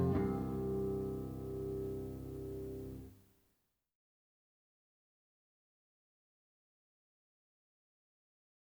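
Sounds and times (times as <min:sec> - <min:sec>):
instrumental music: 0:00.0 - 0:03.1.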